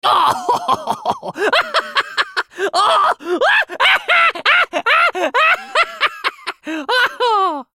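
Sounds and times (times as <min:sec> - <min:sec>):
person laughing: 0:00.1 - 0:07.7.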